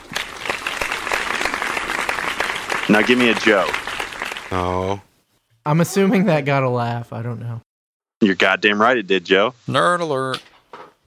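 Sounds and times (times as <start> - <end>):
round of applause: 0.0 - 4.6
speech: 2.9 - 3.8, 4.5 - 10.5.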